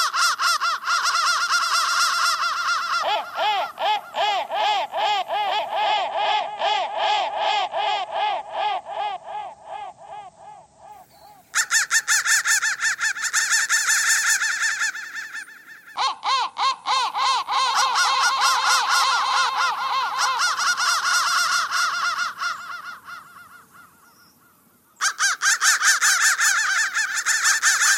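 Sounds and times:
crows cawing together: 0.0 - 27.9.

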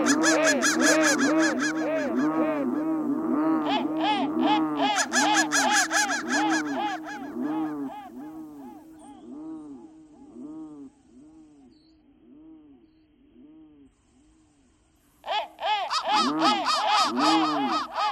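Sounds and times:
crow cawing: 0.0 - 10.5, 15.2 - 18.1.

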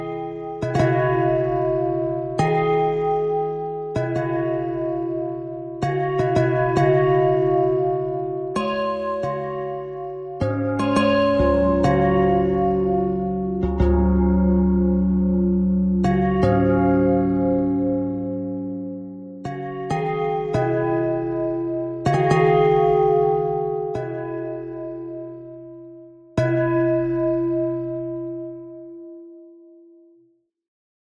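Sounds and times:
pentatonic bell thread: 0.0 - 29.2.

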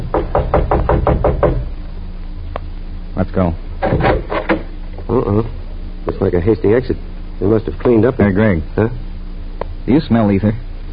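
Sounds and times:
knocking on a private door off a reception room: 0.0 - 1.7, 3.8 - 4.7
speech: 3.3 - 3.7, 5.2 - 5.6, 6.2 - 9.0, 9.8 - 10.6.

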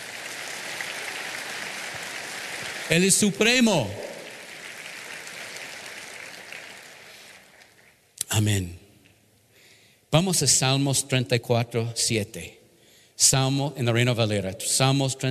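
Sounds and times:
audience applauding: 0.0 - 8.0
speech: 2.9 - 4.0, 8.4 - 8.8, 10.1 - 12.6, 13.2 - 15.2.

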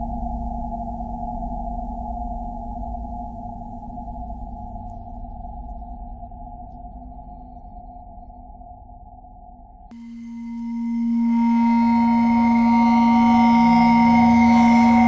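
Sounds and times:
bowed metal: 10.0 - 15.0.

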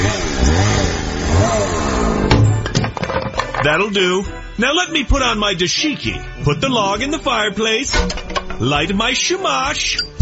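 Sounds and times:
chainsaw engine revving: 0.0 - 2.3
speech: 3.6 - 10.1.

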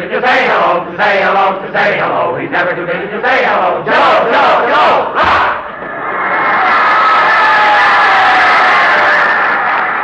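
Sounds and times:
speech: 0.2 - 5.6
football crowd cheering radio comedy sound effect: 3.8 - 10.0.

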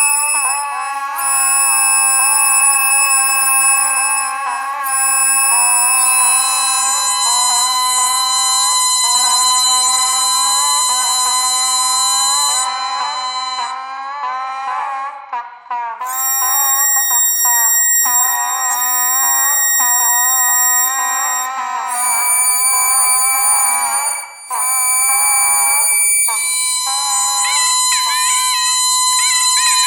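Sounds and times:
bagpipe: 0.0 - 14.9, 16.0 - 29.8.

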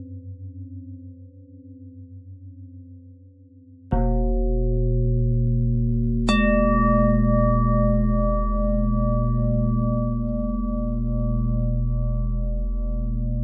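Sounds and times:
bending bell tone: 3.9 - 13.4.

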